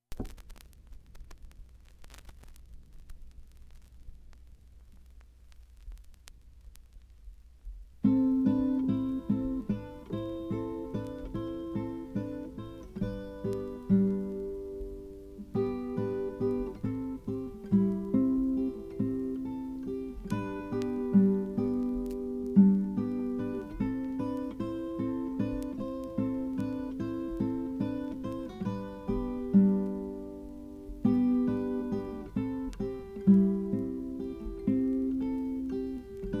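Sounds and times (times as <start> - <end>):
instrumental theme music: 8.0 - 36.3.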